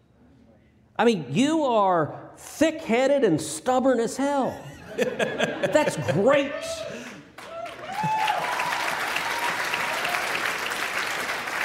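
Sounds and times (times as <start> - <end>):
speech: 1.0 - 7.1
laughter: 4.5 - 7.2
audience applause: 6.9 - 11.6.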